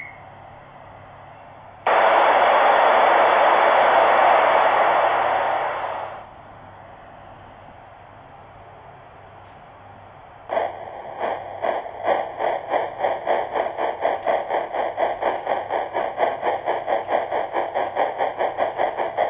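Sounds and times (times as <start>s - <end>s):
steam hissing: 1.9s - 6.3s, 10.5s - 19.2s.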